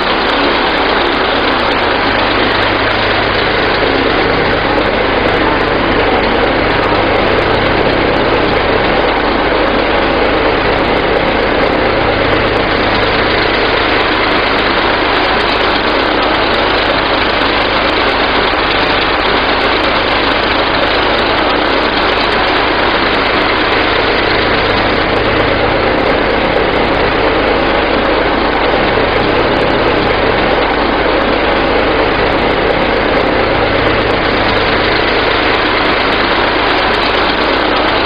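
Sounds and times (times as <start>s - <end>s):
Lycoming O-540 aircraft engine starting and idling: 0.0s - 38.0s.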